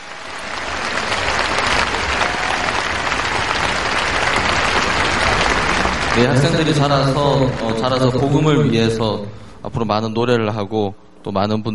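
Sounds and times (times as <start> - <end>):
audience applause: 0.0 - 8.5
speech: 6.2 - 11.7.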